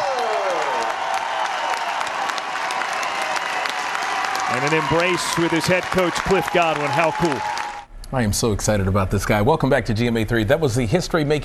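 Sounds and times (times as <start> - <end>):
stadium crowd giving an ovation: 0.0 - 7.9
speech: 4.6 - 11.4.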